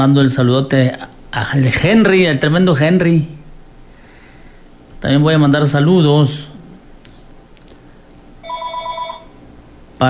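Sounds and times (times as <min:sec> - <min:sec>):
speech: 0:00.0 - 0:03.4, 0:05.0 - 0:06.6
telephone ringing with an electronic trill: 0:08.4 - 0:09.4.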